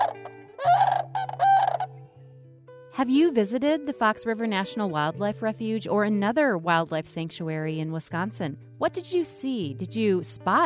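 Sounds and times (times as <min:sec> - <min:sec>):
sandhill crane call: 0:00.0 - 0:02.1
speech: 0:03.0 - 0:10.6.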